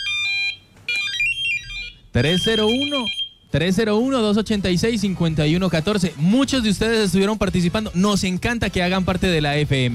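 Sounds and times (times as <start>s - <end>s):
pager beeping: 0.0s - 3.4s
held high tone: 0.9s - 3.4s
speech: 2.2s - 9.9s.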